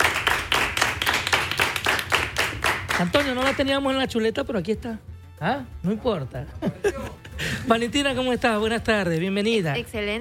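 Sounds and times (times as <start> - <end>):
audience applauding in a radio program studio to welcome a guest: 0.0 - 3.8
speech: 3.0 - 10.1
laughter: 6.5 - 7.9.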